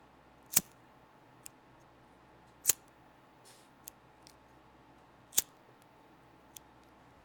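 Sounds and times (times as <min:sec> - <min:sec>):
cigarette lighter sparking: 0:02.6 - 0:02.9, 0:05.3 - 0:05.6.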